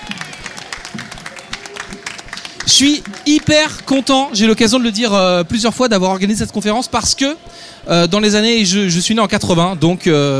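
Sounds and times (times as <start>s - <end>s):
audience applause: 0.0s - 5.1s
speech: 2.7s - 10.3s.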